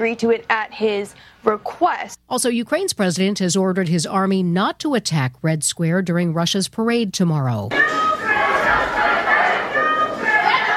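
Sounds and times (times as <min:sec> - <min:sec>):
speech: 0:00.0 - 0:08.3
crowd chatter at the Alabama State House: 0:07.7 - 0:10.7.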